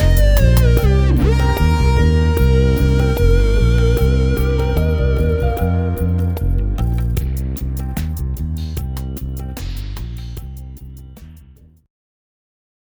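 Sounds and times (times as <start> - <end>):
Moog synthesizer lead: 0.0 - 8.2.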